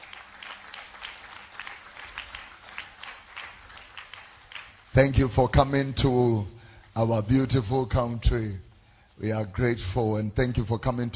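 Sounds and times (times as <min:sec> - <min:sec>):
audience applause: 0:00.0 - 0:04.8
speech: 0:05.0 - 0:08.6, 0:09.2 - 0:11.1.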